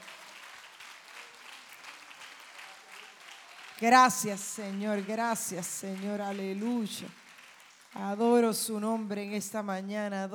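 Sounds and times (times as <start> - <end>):
audience applause: 0.0 - 8.0
speech: 3.8 - 7.2, 7.9 - 10.3.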